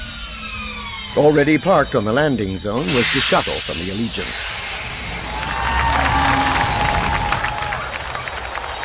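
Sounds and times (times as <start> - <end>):
speech: 1.1 - 4.5
large crowd roaring and cheering: 4.7 - 8.8
people shouting: 5.2 - 8.7.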